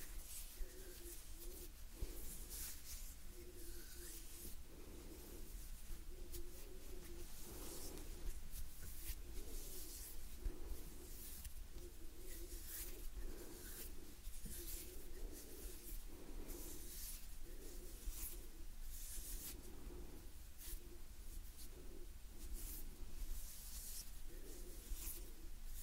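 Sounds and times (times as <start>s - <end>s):
breathing: 0.0s - 25.8s
gentle hands rubbing and brushing: 0.0s - 25.8s
scratchy strokes: 0.0s - 25.8s.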